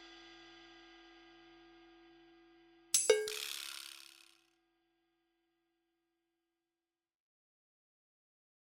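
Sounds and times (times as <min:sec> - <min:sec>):
Kurzweil PC4 drums: 0:03.0 - 0:04.2.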